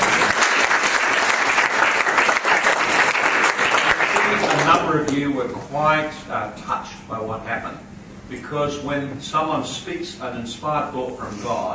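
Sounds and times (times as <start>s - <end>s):
audience clapping at a Christian gathering after a group exercise: 0.0s - 5.2s
speech: 5.0s - 11.7s.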